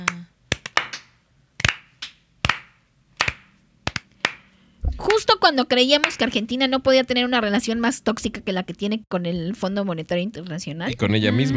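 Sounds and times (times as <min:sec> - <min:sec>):
slow clapping: 0:00.0 - 0:04.6
speech: 0:05.0 - 0:11.5.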